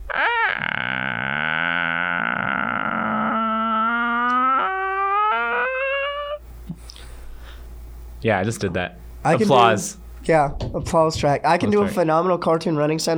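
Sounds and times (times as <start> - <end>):
voice imitating slowly opening creaky door: 0.0 - 6.4
speech: 8.2 - 13.1.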